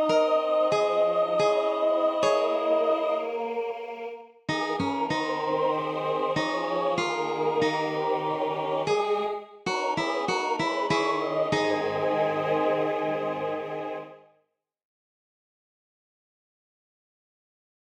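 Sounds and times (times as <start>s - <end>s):
national anthem alto part: 0.0s - 14.2s.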